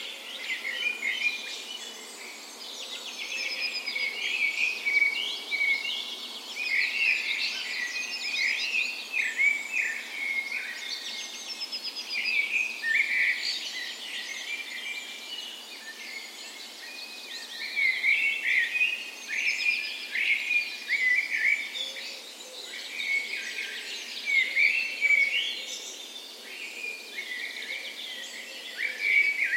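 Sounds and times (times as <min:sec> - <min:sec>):
birds dawn chorus: 0:00.0 - 0:29.5.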